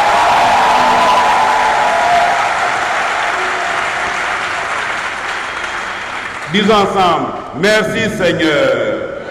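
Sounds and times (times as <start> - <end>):
audience cheers and whistles: 0.0 - 6.4
audience applauding loudly: 0.0 - 7.5
speech: 6.5 - 8.9.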